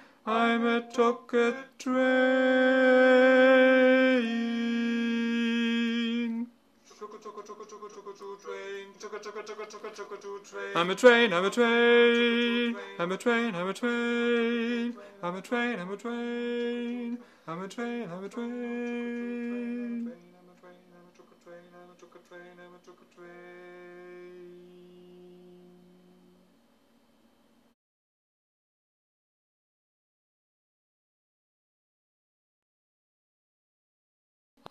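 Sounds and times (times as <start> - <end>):
soprano voice: 0.3 - 26.5.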